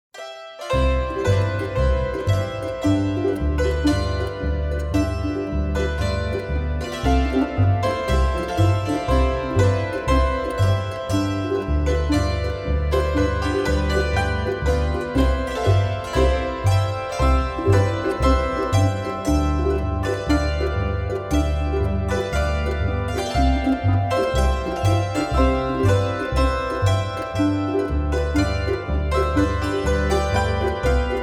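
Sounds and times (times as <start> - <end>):
polka waltz folk music: 0.6 - 31.2.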